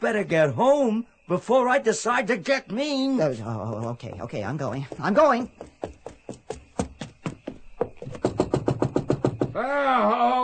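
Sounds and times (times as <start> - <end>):
speech: 0.0 - 6.1, 9.6 - 10.4
knocking on a door: 3.6 - 9.6.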